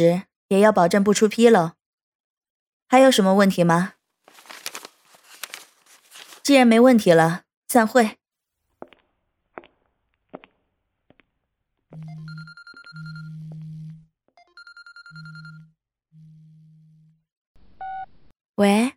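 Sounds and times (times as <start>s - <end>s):
speech: 0.0s - 1.8s, 2.9s - 4.0s, 6.4s - 8.2s, 18.6s - 18.9s
telephone ringing: 12.0s - 15.8s.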